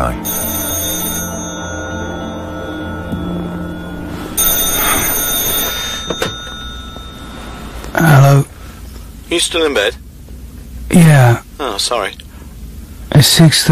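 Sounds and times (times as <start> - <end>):
speech: 0.0 - 0.4, 8.0 - 8.5, 9.3 - 10.0, 10.9 - 12.2, 13.2 - 13.6
telephone ringing: 0.0 - 8.4.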